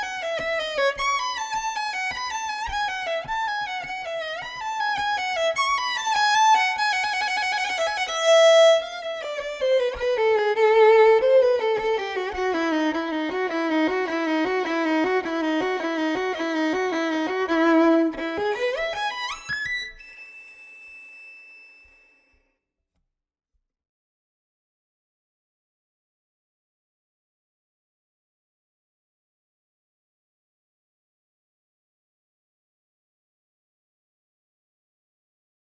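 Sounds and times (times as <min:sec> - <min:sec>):
violin etude: 0:00.0 - 0:21.2.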